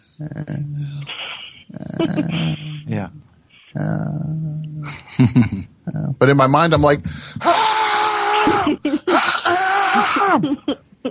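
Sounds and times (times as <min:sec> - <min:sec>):
speech: 0:00.2 - 0:08.8, 0:10.0 - 0:10.8
person imitating a muffled scream during sleep paralysis: 0:07.4 - 0:08.8.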